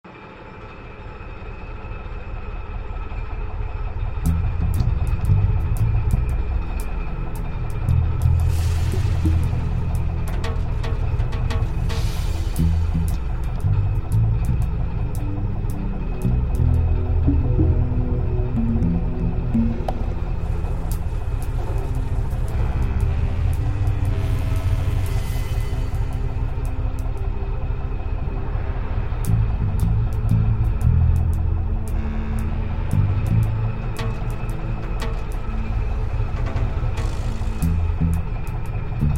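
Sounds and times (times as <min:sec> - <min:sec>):
active machinery in a machinery room: 0:00.1 - 0:39.1.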